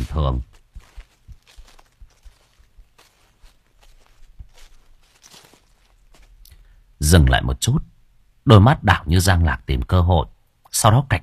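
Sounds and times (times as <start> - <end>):
quiet cautious footsteps: 0.0 - 7.0
speech: 0.1 - 0.5, 7.1 - 7.9, 8.5 - 11.2.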